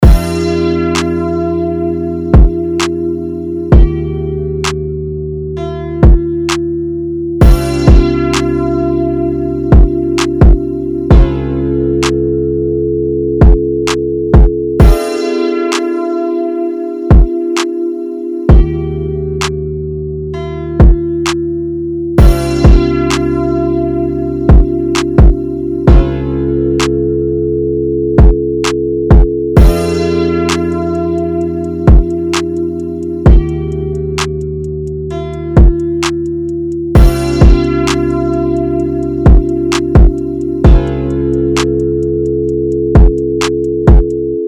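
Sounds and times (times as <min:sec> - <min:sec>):
music beat: 0:00.0 - 0:12.6, 0:13.3 - 0:27.2, 0:28.1 - 0:44.4.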